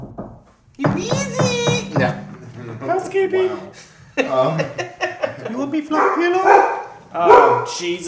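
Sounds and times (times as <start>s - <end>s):
knocking on a door: 0.0s - 2.6s
speech: 0.8s - 1.5s, 3.0s - 4.9s, 5.6s - 8.0s
laughter: 4.1s - 5.8s.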